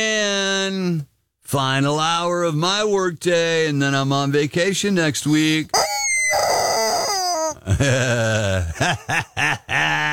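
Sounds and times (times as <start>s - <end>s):
speech: 0.0s - 5.8s, 7.7s - 10.1s
rubber chicken squawking: 5.7s - 7.6s
laughter: 7.6s - 10.1s.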